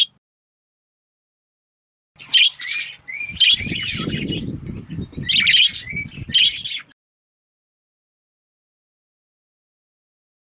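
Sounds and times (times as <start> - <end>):
budgerigar giving raspy buzzy chirps: 2.2 - 6.9.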